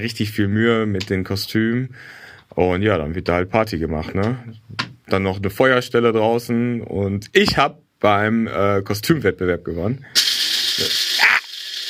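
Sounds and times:
speech: 0.0s - 10.2s
coffee grinder grinding coffee beans: 10.2s - 11.8s.

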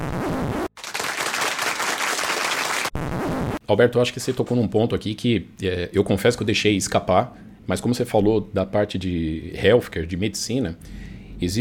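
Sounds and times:
applause: 0.8s - 3.0s
speech: 3.7s - 11.6s.

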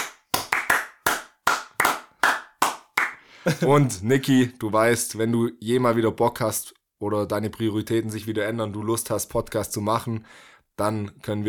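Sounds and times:
small applause, hand clapping: 0.0s - 3.2s
speech: 3.4s - 11.4s.

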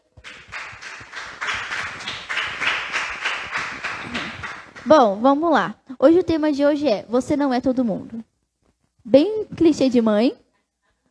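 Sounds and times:
audience applauding: 0.0s - 4.9s
speech: 4.9s - 8.3s, 9.0s - 10.4s.

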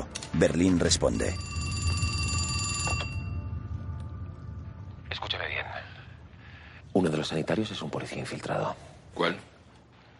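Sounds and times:
speech: 0.4s - 1.5s, 7.2s - 9.5s
telephone ringing with metallic bell trill: 1.0s - 3.6s
low rumbling hum: 1.4s - 10.1s.

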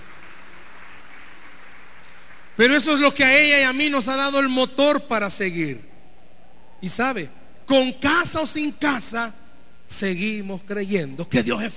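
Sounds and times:
audience applause: 0.0s - 2.6s
speech: 2.6s - 5.9s, 6.8s - 11.7s.

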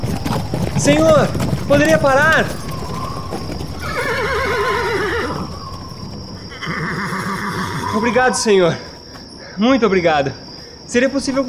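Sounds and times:
cart rolling along: 0.0s - 8.1s
hooves clip-clopping: 0.0s - 9.4s
speech: 0.8s - 2.6s, 7.9s - 8.9s, 9.6s - 11.4s
horse whinnying in long quavering cries: 0.8s - 8.6s.

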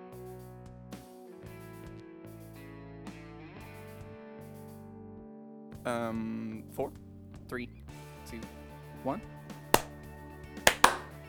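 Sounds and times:
speech: 5.8s - 7.7s, 8.4s - 9.4s
hand clap for audio sync: 9.8s - 10.0s, 10.6s - 11.2s.

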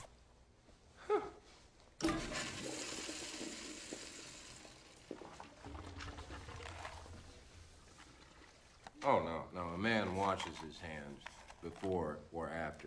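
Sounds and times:
toilet flushing: 2.0s - 8.7s
speech: 9.0s - 12.8s.

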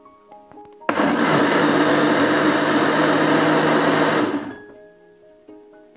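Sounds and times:
blender running to chop vegetables: 0.9s - 4.7s.

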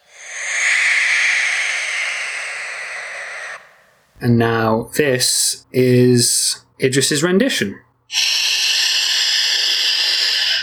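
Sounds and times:
barn owl call: 0.0s - 4.1s, 8.1s - 10.6s
speech: 4.2s - 8.3s.

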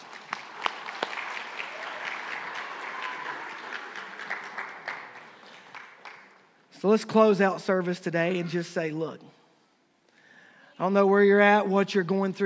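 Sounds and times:
crowd applauding: 0.0s - 6.6s
speech: 6.8s - 9.4s, 10.8s - 12.4s.

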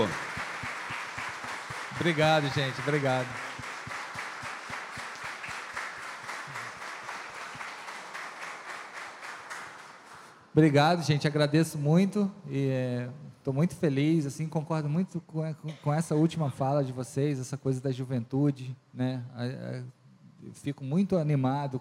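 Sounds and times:
speech: 0.0s - 0.2s, 2.0s - 3.4s, 10.6s - 21.7s
audience applause: 0.0s - 10.3s.

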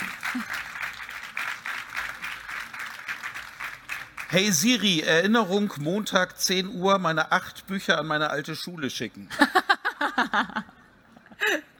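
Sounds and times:
applause: 0.0s - 5.0s
speech: 0.4s - 0.6s, 4.3s - 9.6s, 10.2s - 10.7s.

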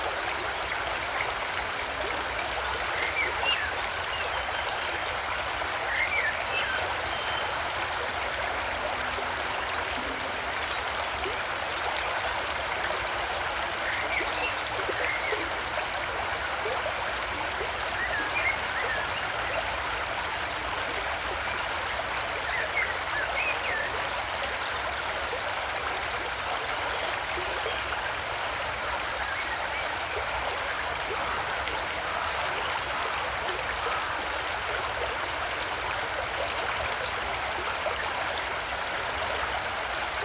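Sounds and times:
stream rushing near Pye Bridge, Derbyshire: 0.0s - 40.2s.

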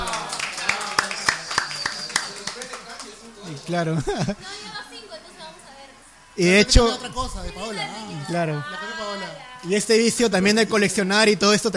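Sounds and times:
applause: 0.0s - 3.3s
speech: 3.7s - 4.8s, 6.4s - 11.7s
laughter: 3.9s - 4.7s.

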